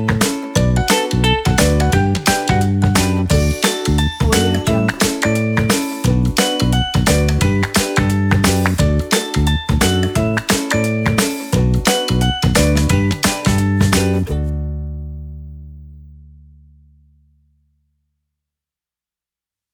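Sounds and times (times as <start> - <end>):
happy advertising music: 0.0 - 14.7.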